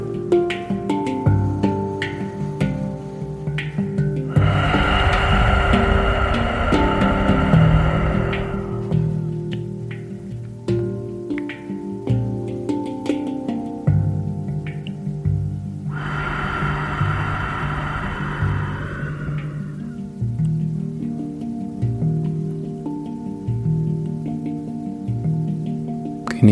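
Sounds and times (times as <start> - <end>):
sustained gentle harmonic music tones: 0.0 - 26.4
soft breathy gusts of wind: 4.2 - 10.1, 15.9 - 21.3.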